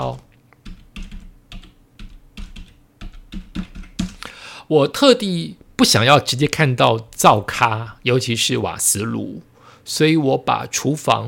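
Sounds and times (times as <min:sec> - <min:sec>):
speech: 0:00.0 - 0:00.3, 0:04.7 - 0:11.2
typing: 0:00.6 - 0:04.2.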